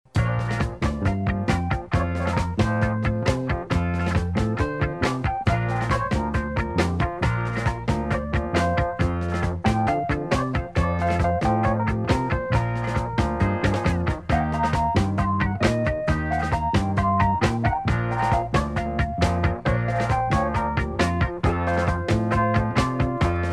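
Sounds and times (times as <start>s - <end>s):
Cajun music: 0.1s - 23.5s.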